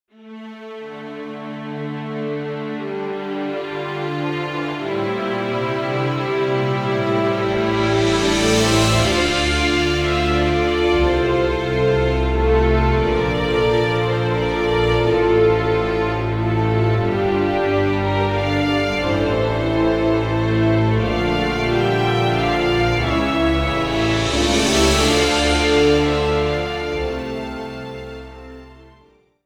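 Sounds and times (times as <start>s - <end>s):
background music: 0.3s - 29.2s.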